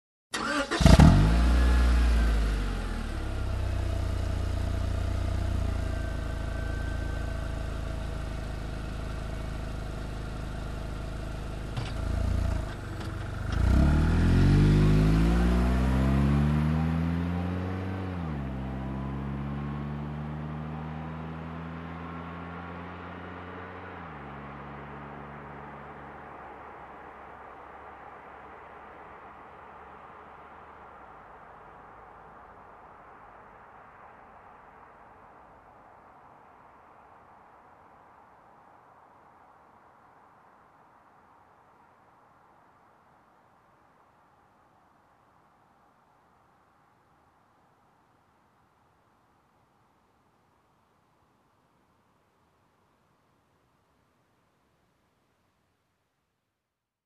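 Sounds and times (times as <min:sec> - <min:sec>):
car engine ignition: 0:00.3 - 0:28.6
car driving away: 0:00.4 - 0:32.6.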